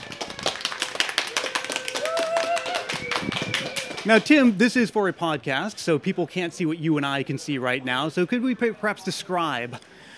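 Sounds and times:
audience applause: 0.0s - 4.4s
speech: 4.0s - 10.0s.

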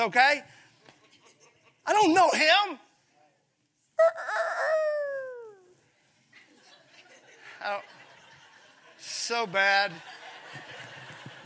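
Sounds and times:
speech: 0.0s - 0.6s, 1.8s - 2.8s, 4.0s - 4.7s, 7.6s - 8.0s, 9.0s - 10.7s
rooster crowing: 4.0s - 5.6s
laughter: 6.4s - 11.4s.

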